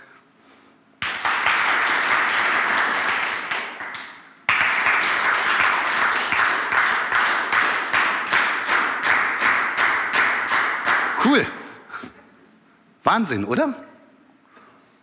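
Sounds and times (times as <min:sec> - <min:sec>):
audience clapping in a shared rhythm: 0:01.0 - 0:11.7
speech: 0:11.3 - 0:11.6, 0:13.0 - 0:13.9.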